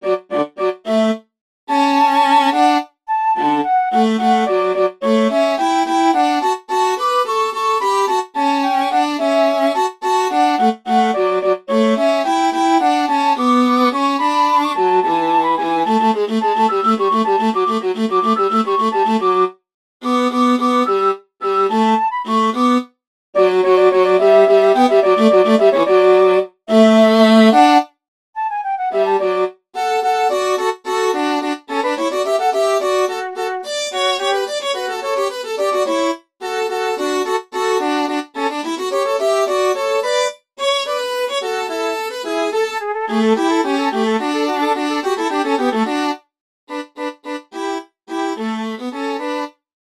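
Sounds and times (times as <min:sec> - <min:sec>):
flute: 0:00.0 - 0:45.8
viola: 0:00.0 - 0:49.5.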